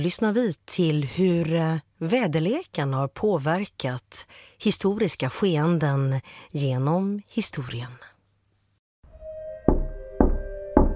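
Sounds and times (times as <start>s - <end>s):
speech: 0.0s - 8.1s
gentle knocking on a wooden bedroom door: 9.7s - 10.9s.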